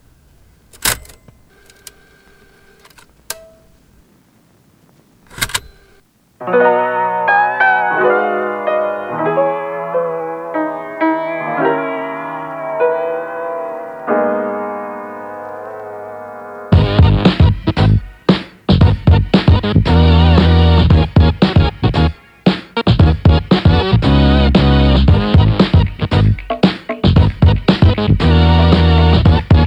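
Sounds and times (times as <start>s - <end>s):
80s late night bounce music: 6.4s - 29.6s.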